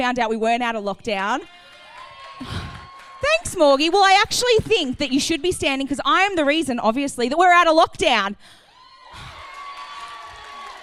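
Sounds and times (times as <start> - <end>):
speech: 0.0 - 1.7, 3.3 - 8.6
audience cheering: 1.4 - 5.4, 8.7 - 10.8
audience applause: 1.5 - 4.0, 9.0 - 10.8.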